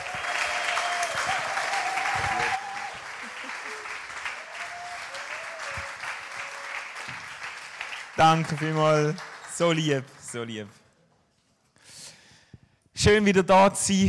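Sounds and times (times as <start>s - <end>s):
audience applause: 0.0s - 10.6s
speech: 8.2s - 10.8s, 13.0s - 14.0s.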